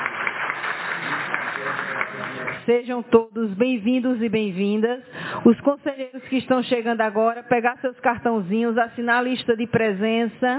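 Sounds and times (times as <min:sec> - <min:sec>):
council applauding newly sworn-in council members: 0:00.0 - 0:02.7
speech: 0:02.7 - 0:10.5.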